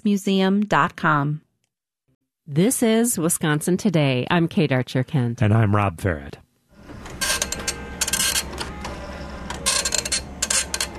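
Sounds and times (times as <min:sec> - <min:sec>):
speech: 0:00.0 - 0:01.4, 0:02.5 - 0:06.4
old printer clacking while printing an image from Microsoft Paint: 0:06.8 - 0:10.9.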